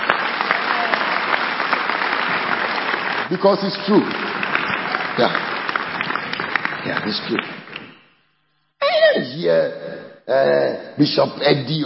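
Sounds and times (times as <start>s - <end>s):
audience applause: 0.0s - 8.0s
speech: 3.3s - 4.2s, 5.2s - 5.5s, 6.8s - 7.6s, 9.4s - 11.8s.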